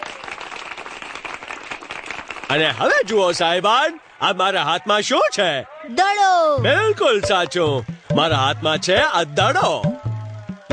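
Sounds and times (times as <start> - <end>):
audience clapping at a magician's show: 0.0 - 4.4
speech: 2.5 - 9.9.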